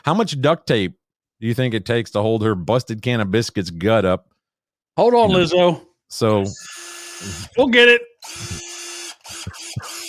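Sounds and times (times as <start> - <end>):
speech: 0.0 - 4.3, 5.0 - 8.6
power drill running: 6.6 - 10.0.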